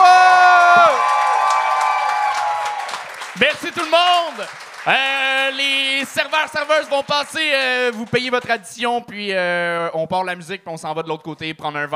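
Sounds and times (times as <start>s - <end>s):
audience cheering and clapping: 0.0s - 8.6s
speech: 3.6s - 11.9s.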